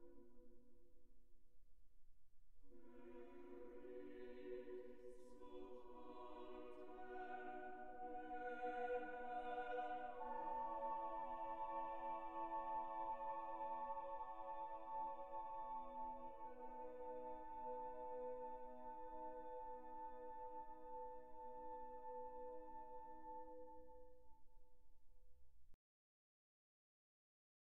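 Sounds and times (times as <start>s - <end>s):
choir singing: 2.7s - 23.8s.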